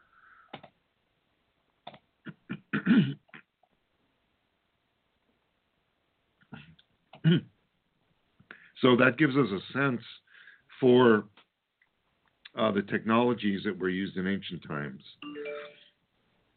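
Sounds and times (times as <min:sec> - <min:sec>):
lecturer clearing throat: 0:02.3 - 0:03.5, 0:06.5 - 0:07.5
speech: 0:02.8 - 0:03.2, 0:07.3 - 0:07.5, 0:08.8 - 0:11.4, 0:12.6 - 0:15.3.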